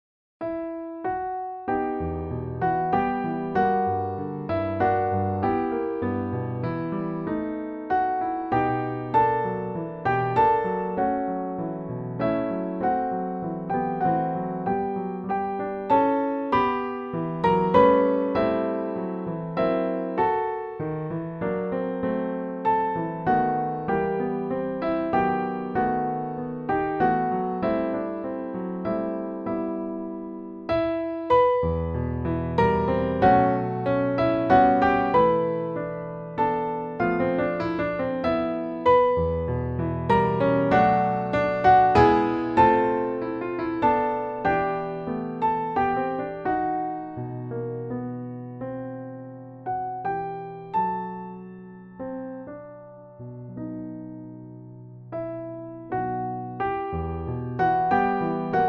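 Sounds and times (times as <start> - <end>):
siciliano piano duet: 0.4 - 58.6.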